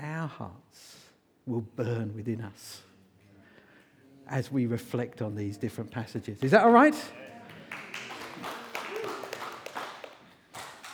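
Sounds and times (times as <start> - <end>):
speech: 0.3 - 2.9, 4.3 - 8.5
audience clapping during sermon: 6.4 - 10.9.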